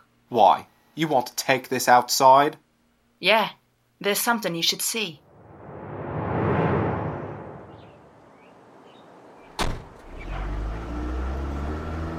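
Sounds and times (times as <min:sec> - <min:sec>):
speech: 0:00.3 - 0:02.6, 0:03.2 - 0:05.2
whoosh: 0:05.2 - 0:08.7
taxi engine rumbling: 0:05.4 - 0:12.1
door-like thump: 0:09.6 - 0:10.0.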